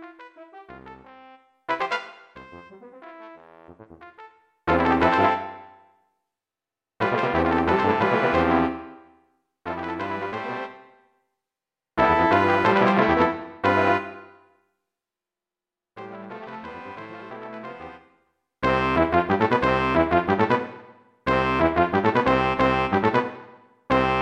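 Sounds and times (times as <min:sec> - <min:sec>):
brass instruments: 0:00.0 - 0:05.8, 0:07.0 - 0:09.0, 0:09.7 - 0:10.9, 0:12.0 - 0:14.4, 0:18.6 - 0:24.1.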